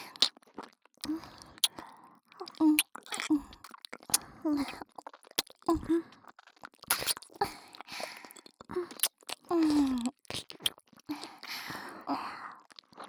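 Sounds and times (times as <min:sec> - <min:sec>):
ear licking: 0:00.0 - 0:01.8, 0:02.6 - 0:05.9, 0:06.7 - 0:11.5.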